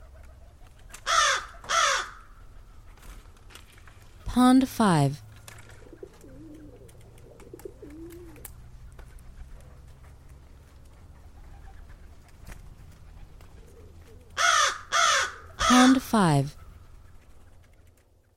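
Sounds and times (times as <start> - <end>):
American crow cawing: 1.0 - 2.3, 14.4 - 15.7
speech: 4.4 - 5.2.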